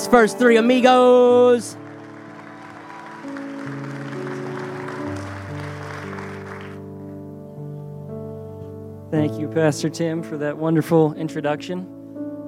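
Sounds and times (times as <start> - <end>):
sustained keyboard chords: 0.0 - 12.4
speech: 0.1 - 1.8, 9.1 - 12.0
audience applause at a church service: 1.7 - 6.9.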